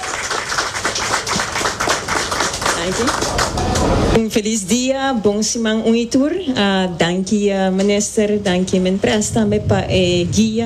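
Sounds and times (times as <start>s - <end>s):
audience applause: 0.0s - 4.0s
speech: 2.8s - 10.6s.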